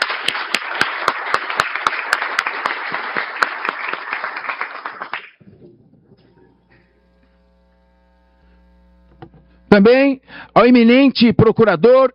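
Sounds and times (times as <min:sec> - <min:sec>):
audience applause: 0:00.0 - 0:05.4
speech: 0:09.7 - 0:12.1.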